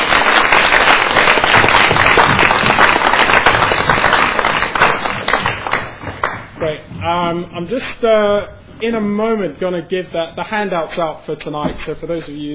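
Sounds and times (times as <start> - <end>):
round of applause from a group: 0.0 - 6.6
speech: 7.1 - 12.5.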